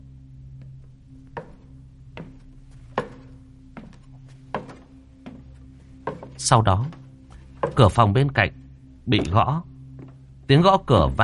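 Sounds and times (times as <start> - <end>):
low constant hum: 0.0 - 11.2
footsteps in a hallway: 1.3 - 8.0, 9.1 - 10.2
speech: 6.4 - 7.0, 7.8 - 9.7, 10.5 - 11.2.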